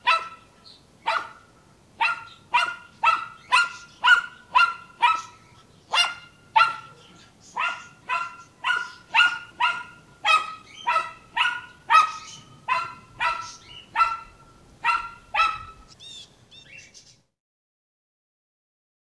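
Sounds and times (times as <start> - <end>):
dog: 0.0 - 0.4, 1.1 - 1.4, 2.0 - 7.0, 7.6 - 15.8.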